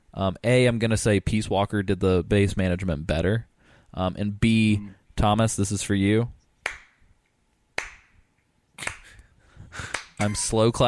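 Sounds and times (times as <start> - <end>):
speech: 0.2 - 6.8, 9.8 - 10.8
finger snapping: 7.8 - 8.2, 8.8 - 9.2.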